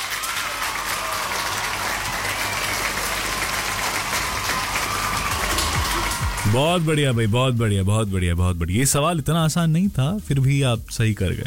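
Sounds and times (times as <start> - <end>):
crowd applause sound effect: 0.0 - 7.2
speech: 6.5 - 11.4.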